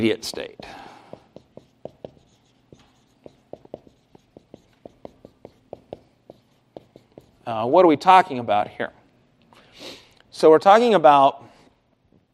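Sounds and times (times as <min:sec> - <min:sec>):
speech: 0:00.0 - 0:00.8, 0:07.5 - 0:09.0, 0:09.8 - 0:11.5
marker or chalk writing on a board: 0:00.0 - 0:07.6.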